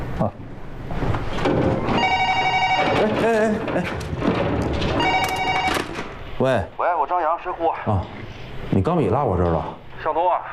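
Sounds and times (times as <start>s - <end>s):
speech: 0.2s - 0.4s, 3.0s - 4.4s, 6.4s - 10.5s
telephone ringing: 1.9s - 3.7s, 4.8s - 6.1s.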